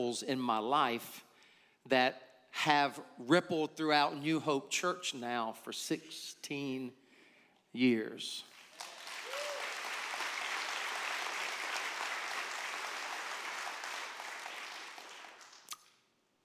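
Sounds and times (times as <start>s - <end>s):
speech: 0.0s - 7.0s, 7.7s - 9.0s
audience applause: 8.5s - 15.7s.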